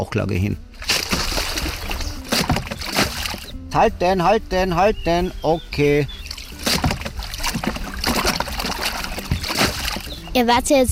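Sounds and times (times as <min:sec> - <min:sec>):
speech: 0:00.0 - 0:00.6, 0:03.7 - 0:06.2, 0:10.4 - 0:10.8
water splashing as a homemade raft is launched: 0:00.7 - 0:03.6, 0:05.8 - 0:10.6.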